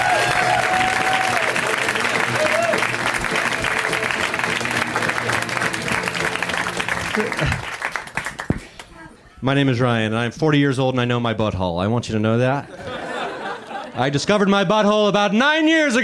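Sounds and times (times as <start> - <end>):
audience clapping: 0.0 - 9.0
laughter: 6.8 - 7.8, 12.6 - 14.4
speech: 9.4 - 12.8, 14.0 - 16.0.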